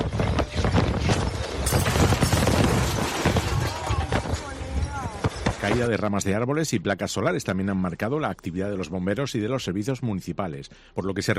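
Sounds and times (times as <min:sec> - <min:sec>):
strong wind roaring: 0:00.0 - 0:05.9
glass recycling container banging and clattering in strong wind: 0:00.0 - 0:06.1
jangling glassy rattling: 0:00.0 - 0:06.4
speech: 0:05.7 - 0:11.3.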